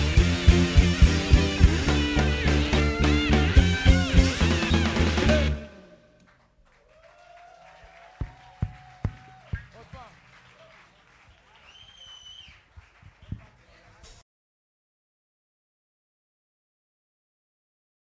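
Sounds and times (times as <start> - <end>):
music: 0.0 - 6.2.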